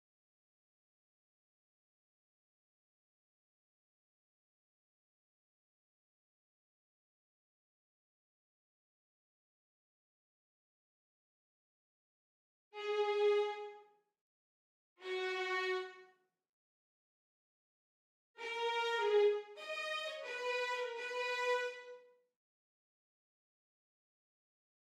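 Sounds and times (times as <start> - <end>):
violins: 12.8 - 13.8, 15.0 - 16.0, 18.4 - 22.0.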